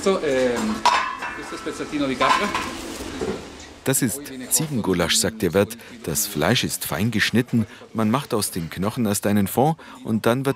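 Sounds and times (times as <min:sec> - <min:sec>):
speech: 0:00.0 - 0:10.5
metal cooking pots clinking: 0:00.6 - 0:03.4.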